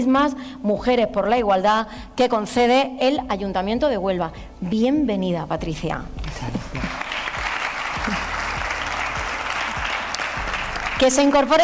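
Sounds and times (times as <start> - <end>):
speech: 0.0 - 6.7, 11.0 - 11.6
audience applause: 6.8 - 11.6.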